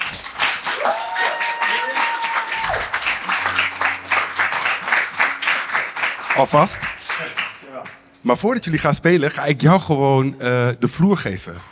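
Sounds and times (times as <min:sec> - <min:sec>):
crowd applauding: 0:00.0 - 0:08.2
cheers and whoops: 0:00.6 - 0:03.6
speech: 0:06.4 - 0:07.0, 0:08.2 - 0:11.7.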